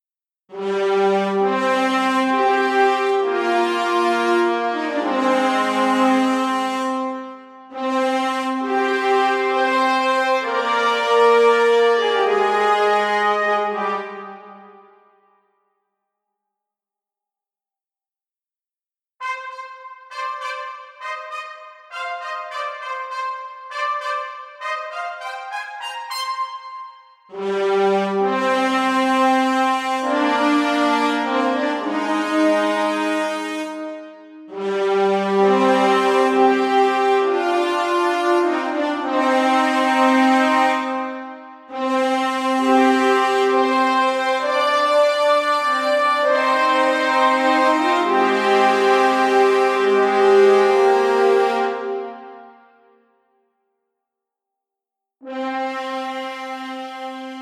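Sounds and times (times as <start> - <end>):
high brass sustained notes: 0.5 - 15.2, 19.2 - 52.9, 55.2 - 57.3.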